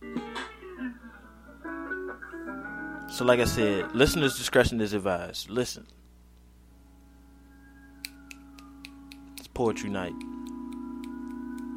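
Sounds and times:
speech: 3.2 - 6.0, 9.6 - 10.3
finger snapping: 8.0 - 11.7.

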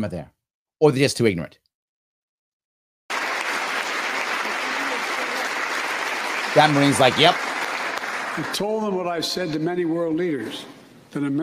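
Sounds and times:
speech: 0.0 - 1.6, 6.6 - 7.5, 8.4 - 11.4
audience applause: 3.1 - 9.0.

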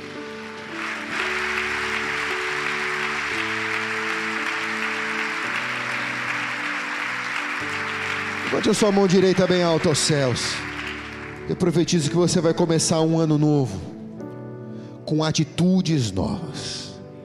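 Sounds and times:
sustained loud audience applause: 0.0 - 12.2
speech: 7.7 - 10.7, 11.5 - 13.9, 15.1 - 16.8.

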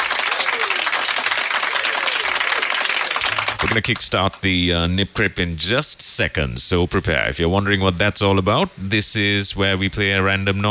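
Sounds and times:
crowd applause: 0.0 - 4.4
speech: 3.7 - 10.6.

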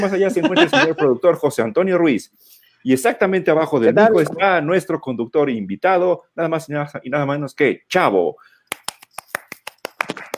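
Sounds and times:
laughter: 0.0 - 1.2
speech: 0.0 - 8.8
applause: 8.7 - 10.3.

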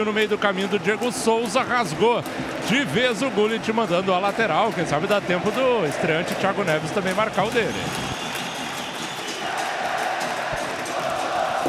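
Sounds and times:
speech: 0.0 - 8.1
large stadium crowd cheering after a goal: 0.0 - 11.6.

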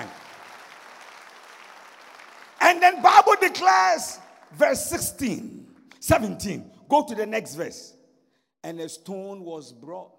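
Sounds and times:
audience clapping: 0.0 - 5.4
speech: 2.8 - 8.0, 8.6 - 10.1.

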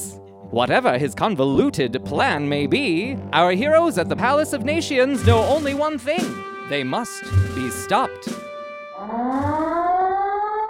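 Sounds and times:
speech: 0.1 - 8.4, 9.0 - 9.8
perimeter alarm siren wailing: 8.9 - 10.6.

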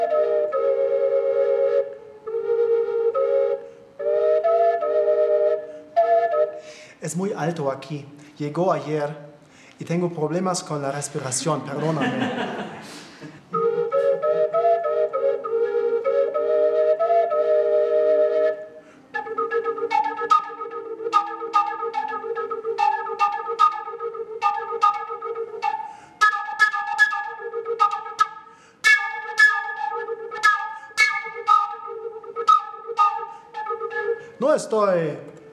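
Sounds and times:
wind instrument played open without covering finger holes, overblown: 0.0 - 6.9, 13.5 - 34.6
speech: 7.1 - 12.6
laughter: 11.1 - 13.5.

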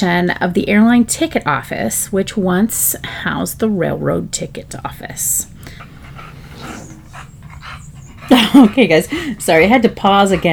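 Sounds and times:
speech: 0.0 - 5.9, 8.3 - 10.5
bulldog panting: 5.1 - 10.5.

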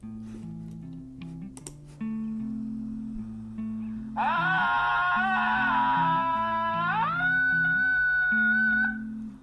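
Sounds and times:
low music: 0.0 - 9.4
Tarzan-like human yell: 4.2 - 9.0.

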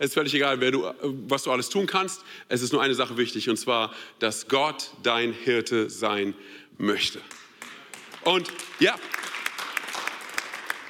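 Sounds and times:
speech: 0.0 - 7.4, 8.2 - 9.3
half-hearted audience clapping: 7.2 - 10.8.

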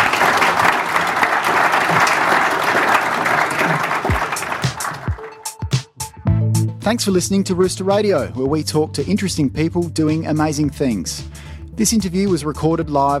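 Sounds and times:
audience applause: 0.0 - 5.8
speech: 6.9 - 13.1.

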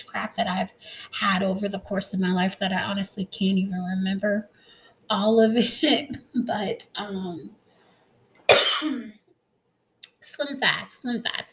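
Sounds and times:
speech: 0.1 - 7.6, 8.8 - 9.2, 10.4 - 11.5
faint trailing breath: 4.5 - 5.1, 7.6 - 8.1
person with the flu coughing: 8.5 - 9.1.

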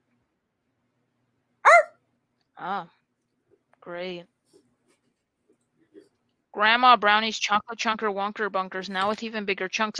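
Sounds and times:
dog barking: 1.7 - 2.0
speech: 2.6 - 3.0, 3.8 - 4.3, 6.6 - 9.9.

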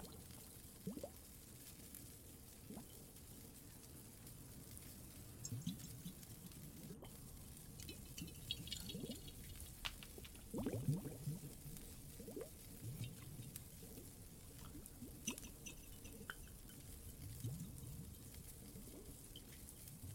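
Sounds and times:
faint bright ticks and crackles: 0.0 - 20.1
water dripping and trickling in a cave: 0.0 - 20.1.

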